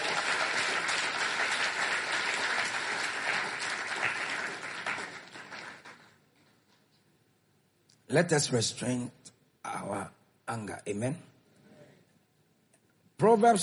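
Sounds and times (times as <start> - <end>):
audience clapping hands: 0.0 - 6.6
speech: 8.1 - 9.2, 9.8 - 11.3, 13.2 - 13.6.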